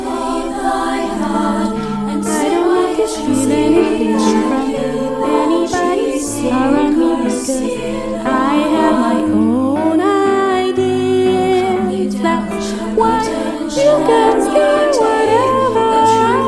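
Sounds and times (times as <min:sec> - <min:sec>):
waltz music: 0:00.2 - 0:16.4.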